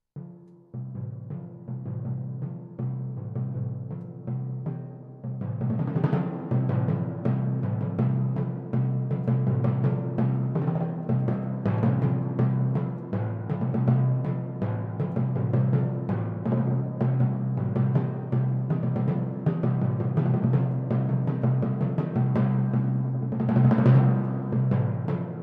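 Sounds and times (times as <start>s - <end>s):
timpani: 0.2s - 25.4s.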